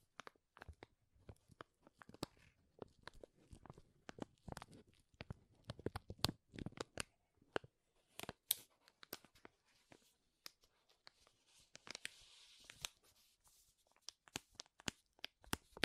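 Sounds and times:
crinkling and rustling: 0:00.0 - 0:15.8.

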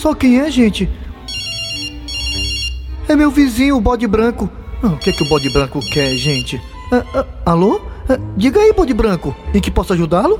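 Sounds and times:
speech: 0:00.0 - 0:01.1, 0:03.1 - 0:10.3
telephone ringing with warbling trill: 0:01.3 - 0:02.9, 0:05.0 - 0:06.6.

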